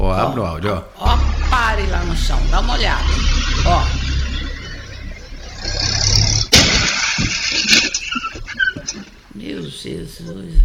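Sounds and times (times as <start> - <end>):
speech: 0.2 - 4.1, 9.4 - 10.6
car engine rumbling: 1.0 - 8.1
debris clattering and rattling: 1.2 - 9.1.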